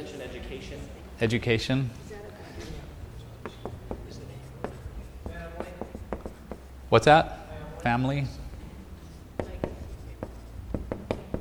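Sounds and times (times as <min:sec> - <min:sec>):
speech: 0:00.1 - 0:02.7, 0:06.9 - 0:08.4
pen or marker strokes and taps on a board: 0:02.7 - 0:07.0, 0:09.0 - 0:11.3.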